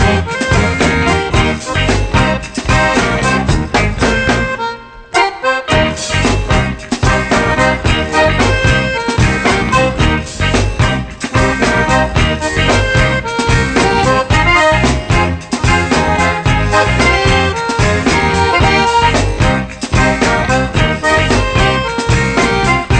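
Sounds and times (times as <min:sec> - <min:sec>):
blues music: 0:00.0 - 0:22.9.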